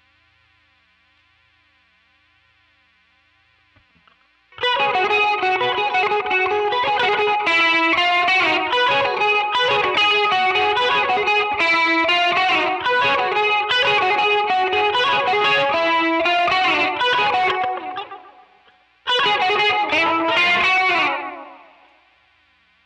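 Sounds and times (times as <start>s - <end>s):
guitar solo through a Quilter amplifier: 4.6s - 21.9s.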